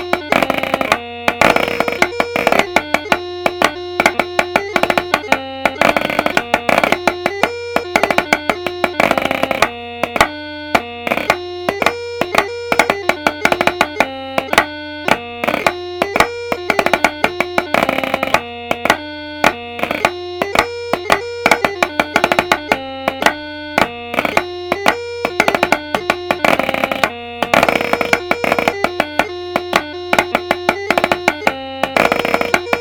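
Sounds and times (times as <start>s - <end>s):
bagpipe chanter: 0.0s - 32.8s
snare drum: 0.0s - 32.8s.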